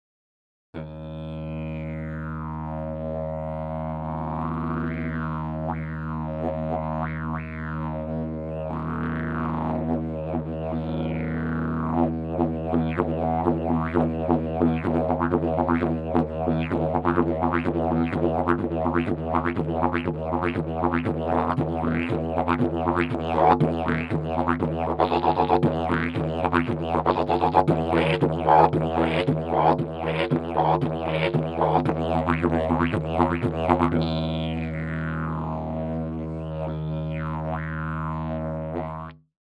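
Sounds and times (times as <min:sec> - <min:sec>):
didgeridoo: 0:00.8 - 0:39.3.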